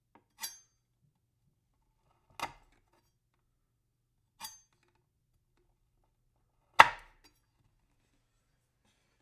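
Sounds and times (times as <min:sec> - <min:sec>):
knife chopping on wood: 0:06.8 - 0:07.1.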